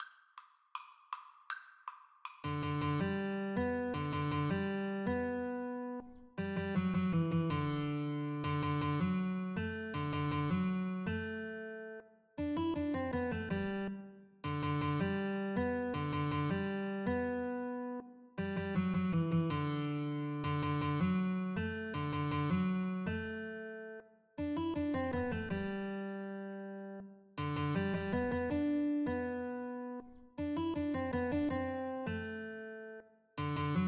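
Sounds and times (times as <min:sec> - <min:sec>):
guitar duet: 0:02.4 - 0:33.8.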